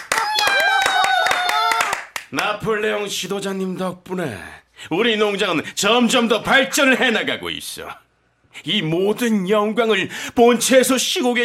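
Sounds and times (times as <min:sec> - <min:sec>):
clapping: 0:00.0 - 0:02.5
speech: 0:02.3 - 0:08.0, 0:08.6 - 0:11.4.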